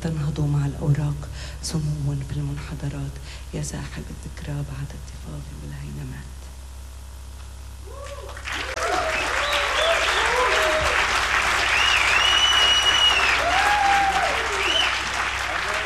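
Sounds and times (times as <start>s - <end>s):
speech: 0.0s - 6.4s
concert audience applause: 7.9s - 15.8s
faint voices and whistles: 9.1s - 10.3s, 11.7s - 13.4s, 14.5s - 15.0s.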